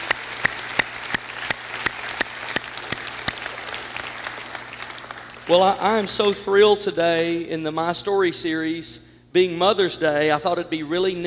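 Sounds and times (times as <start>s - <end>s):
audience applause honouring mothers on Mother's Day: 0.0s - 6.6s
speech: 5.5s - 11.2s.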